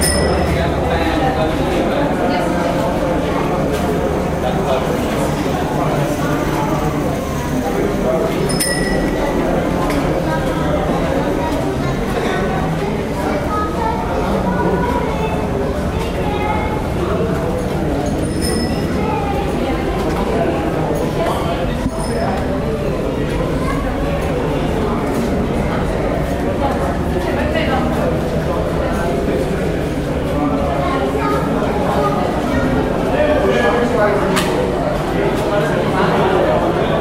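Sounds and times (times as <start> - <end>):
light metallic clinks: 0.0 - 0.6, 8.5 - 9.2
footsteps of racing fans walking through a tunnel: 0.0 - 37.0
murmur of racing fans in a tunnel at a motor racing event: 0.0 - 37.0.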